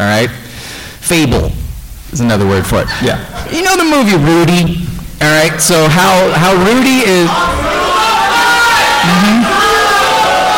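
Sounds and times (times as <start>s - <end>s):
speech: 0.0s - 0.4s, 1.1s - 7.8s, 9.0s - 9.6s
audience yelling in unison: 6.5s - 10.5s.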